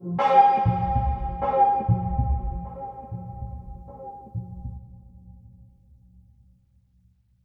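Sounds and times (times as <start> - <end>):
mysterious string music: 0.0 - 5.0.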